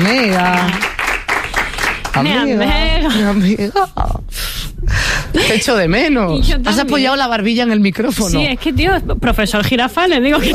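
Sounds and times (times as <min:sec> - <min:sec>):
studio audience clapping for a guest on a Spanish entertainment show: 0:00.0 - 0:02.7
speech: 0:00.1 - 0:00.8, 0:02.2 - 0:10.5.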